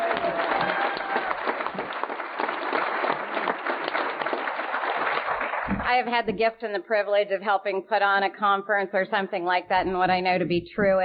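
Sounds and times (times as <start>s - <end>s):
round of applause: 0.0s - 5.9s
speech: 5.9s - 11.0s.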